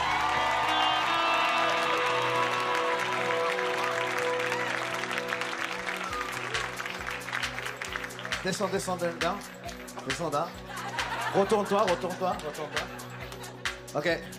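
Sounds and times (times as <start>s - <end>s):
audience shouts and whoops at a religious gathering: 0.0s - 7.0s
audience clapping at a religious gathering: 0.0s - 13.9s
speech: 8.4s - 10.6s, 11.3s - 13.1s, 13.9s - 14.3s
laughter: 10.5s - 14.0s.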